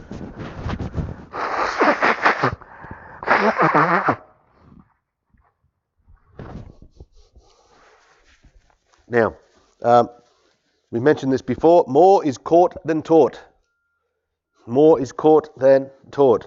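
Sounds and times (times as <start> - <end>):
person blowing nose: 0.0 - 4.8
quiet rustling: 6.1 - 11.0
speech: 9.1 - 10.2, 10.9 - 13.5, 14.6 - 16.4.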